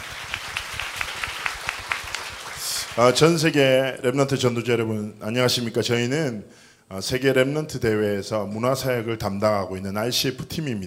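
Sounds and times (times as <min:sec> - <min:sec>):
audience clapping: 0:00.0 - 0:03.6
speech: 0:03.0 - 0:10.8.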